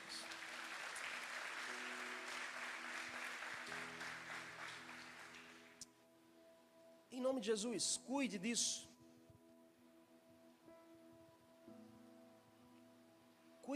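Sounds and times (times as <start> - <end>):
audience applause: 0.0 - 5.8
speech: 7.1 - 8.9.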